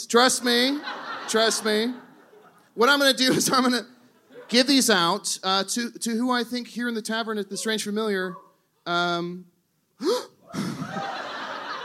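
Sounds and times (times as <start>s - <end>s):
speech: 0.0s - 2.0s, 2.8s - 10.6s
laughter: 0.3s - 5.0s, 10.5s - 11.8s
sharp gasp: 10.0s - 10.8s.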